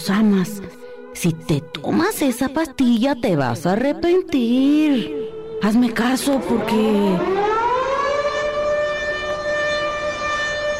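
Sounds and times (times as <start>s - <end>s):
speech: 0.0s - 7.5s
deafening alarm siren: 5.2s - 10.7s.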